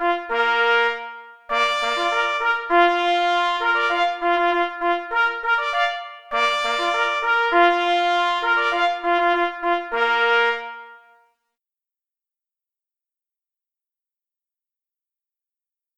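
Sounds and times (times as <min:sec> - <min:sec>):
march music: 0:00.0 - 0:11.2.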